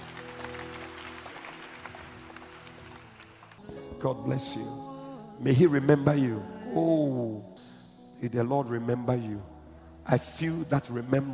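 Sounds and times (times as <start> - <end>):
audience clapping: 0.0 - 4.0
speech: 4.0 - 7.5, 8.2 - 9.5, 10.1 - 11.3.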